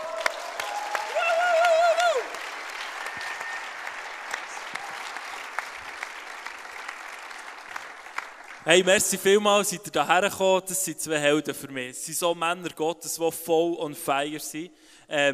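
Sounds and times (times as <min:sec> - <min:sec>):
audience applause: 0:00.0 - 0:08.8
speech: 0:08.7 - 0:15.3.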